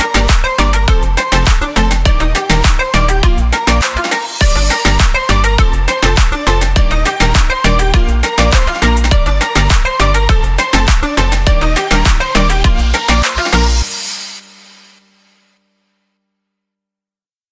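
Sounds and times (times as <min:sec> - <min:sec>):
tropical house music: 0:00.0 - 0:15.1.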